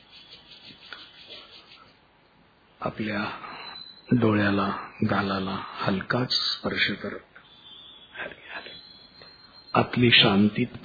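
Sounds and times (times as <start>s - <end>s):
palms rubbed gently against each other: 0.0s - 2.0s
speech: 2.8s - 3.5s, 4.1s - 7.3s, 9.8s - 10.8s.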